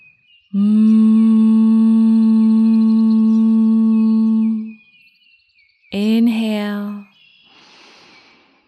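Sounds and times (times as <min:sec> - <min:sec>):
speech: 0:00.5 - 0:01.0
person humming with closed mouth: 0:00.6 - 0:04.8.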